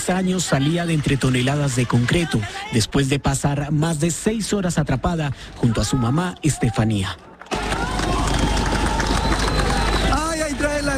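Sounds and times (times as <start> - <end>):
crowd shouting and cheering at a rescue: 0.0 - 3.0, 5.6 - 10.9
speech: 0.1 - 7.3
scattered clapping: 0.6 - 2.5, 7.3 - 10.9.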